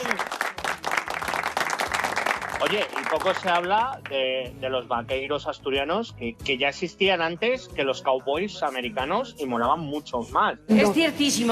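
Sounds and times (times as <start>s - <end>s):
audience applause: 0.0s - 4.1s
speech: 2.6s - 11.5s.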